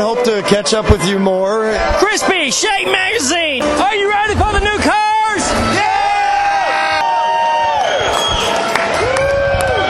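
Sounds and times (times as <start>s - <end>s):
speech: 0.0s - 5.9s
concert crowd cheering as band comes out: 1.8s - 9.8s
crowd shouts and whistles: 5.7s - 9.8s.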